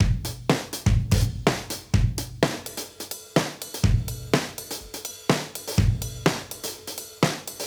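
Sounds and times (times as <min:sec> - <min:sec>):
modern breakbeat music: 0:00.0 - 0:07.6.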